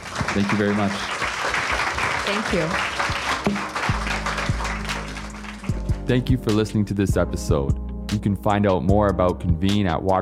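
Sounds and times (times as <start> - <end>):
audience applause for a panel: 0.0 - 6.1
speech: 0.4 - 1.2, 2.3 - 3.8, 6.1 - 10.2.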